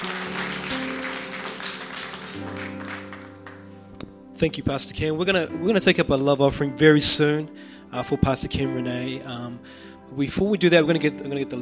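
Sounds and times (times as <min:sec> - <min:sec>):
audience clapping hands: 0:00.0 - 0:04.1
speech: 0:04.4 - 0:11.6.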